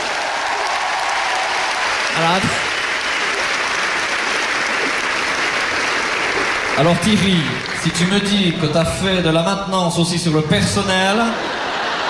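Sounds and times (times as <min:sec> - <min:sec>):
audience clapping at a live stage show: 0:00.0 - 0:09.2
speech: 0:02.2 - 0:02.6, 0:06.8 - 0:11.6
laughter: 0:11.0 - 0:12.0.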